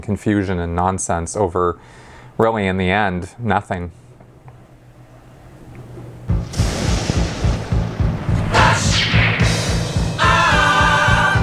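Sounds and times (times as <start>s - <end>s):
speech: 0.0s - 4.0s
thunder and lightning sound effect: 6.3s - 10.7s.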